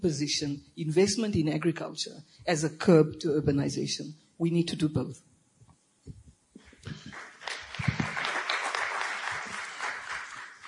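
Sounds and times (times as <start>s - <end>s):
speech: 0.0s - 5.3s
audience clapping: 6.8s - 10.6s.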